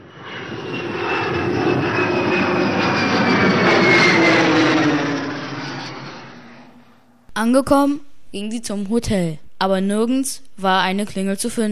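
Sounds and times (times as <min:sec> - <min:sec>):
airplane engine droning overhead: 0:00.0 - 0:07.3
speech: 0:07.4 - 0:11.7.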